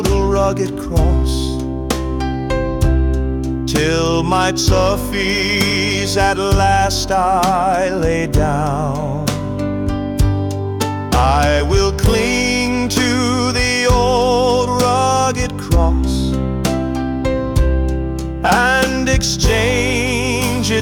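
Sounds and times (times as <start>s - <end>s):
man singing a hymn: 0.0s - 1.8s, 3.6s - 9.7s, 11.1s - 16.5s, 18.4s - 20.8s
piano: 0.0s - 20.8s.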